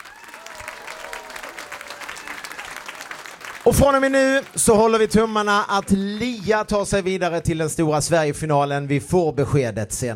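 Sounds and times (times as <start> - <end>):
audience applause: 0.0 - 7.5
speech: 3.7 - 10.1.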